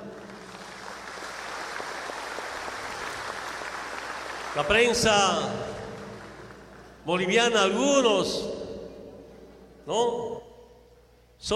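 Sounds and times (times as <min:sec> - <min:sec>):
crowd applause: 0:00.0 - 0:07.0
speech: 0:04.6 - 0:05.7, 0:07.1 - 0:08.6, 0:09.9 - 0:10.3, 0:11.4 - 0:11.5.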